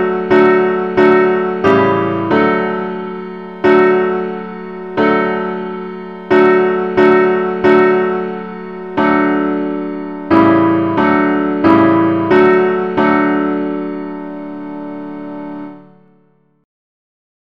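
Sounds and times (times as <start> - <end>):
simple musical accompaniment in the key of D: 0.0 - 16.6.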